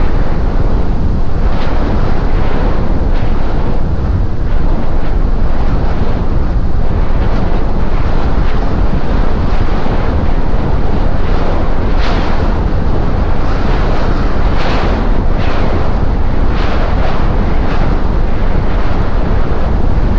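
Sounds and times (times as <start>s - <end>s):
wind: 0.0s - 20.1s.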